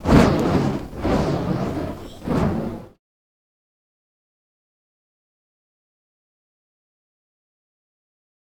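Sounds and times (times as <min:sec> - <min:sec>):
fire staff fire sound effects: 0:00.0 - 0:03.0.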